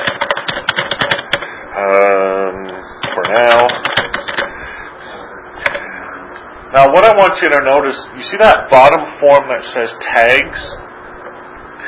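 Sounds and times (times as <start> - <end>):
typing on a computer keyboard: 0.0 - 1.4, 3.0 - 4.5
speech: 6.8 - 10.8.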